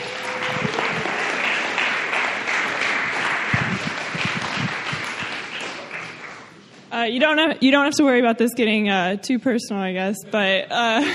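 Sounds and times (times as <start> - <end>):
crowd applause: 0.0 - 6.6
speech: 7.0 - 11.1.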